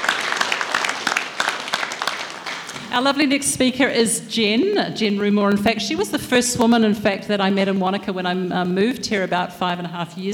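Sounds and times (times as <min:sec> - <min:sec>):
audience applause: 0:00.0 - 0:02.9
speech: 0:02.9 - 0:10.3.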